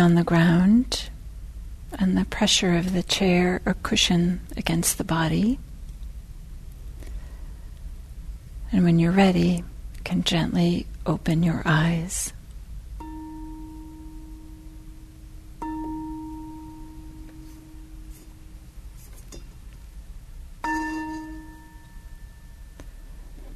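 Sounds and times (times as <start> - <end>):
speech: 0.0 - 1.1, 1.9 - 5.7, 8.7 - 12.4
meditation bell ringing, slightly muffled: 13.0 - 19.5, 20.6 - 23.2.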